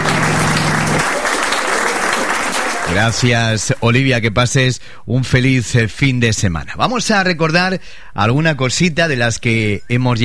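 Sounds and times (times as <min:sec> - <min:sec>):
applause ovation: 0:00.0 - 0:03.8
speech: 0:03.0 - 0:10.2.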